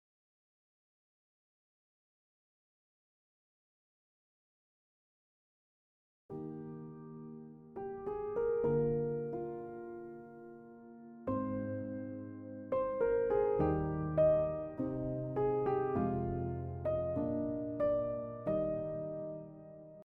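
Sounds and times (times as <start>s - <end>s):
piano: 6.3s - 20.0s.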